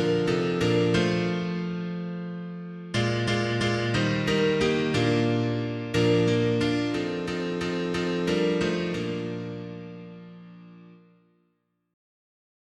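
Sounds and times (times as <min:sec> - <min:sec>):
mono piano: 0:00.0 - 0:11.4.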